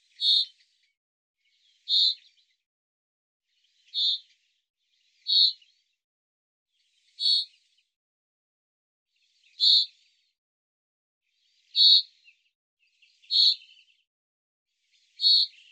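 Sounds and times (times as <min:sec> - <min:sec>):
bird chirps: 0:00.0 - 0:02.6, 0:03.6 - 0:05.8, 0:06.8 - 0:07.8, 0:09.2 - 0:10.1, 0:11.5 - 0:14.0, 0:14.9 - 0:15.7.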